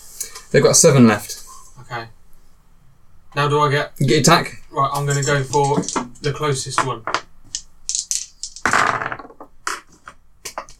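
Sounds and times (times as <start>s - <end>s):
speech: 0.5s - 2.2s, 3.4s - 7.2s
dice dropped: 5.0s - 10.7s.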